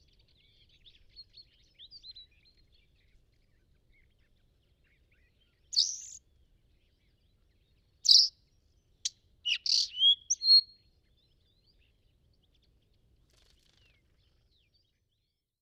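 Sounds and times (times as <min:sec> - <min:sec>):
bluethroat Luscinia svecica azuricollis singing: 0:05.8 - 0:06.2, 0:08.1 - 0:08.3, 0:09.5 - 0:10.8.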